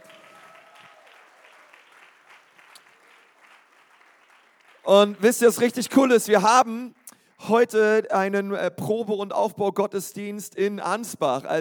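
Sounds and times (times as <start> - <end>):
audience applauding: 0.0 - 6.2
speech: 4.8 - 11.5.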